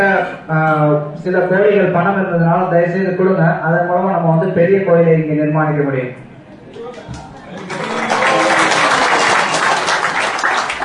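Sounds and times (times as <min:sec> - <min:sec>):
speech: 0:00.0 - 0:06.3
audience clapping: 0:06.8 - 0:10.8.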